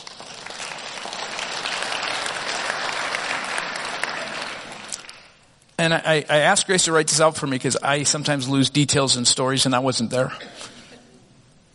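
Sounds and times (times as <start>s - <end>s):
audience clapping: 0.0s - 5.4s
speech: 5.8s - 10.8s.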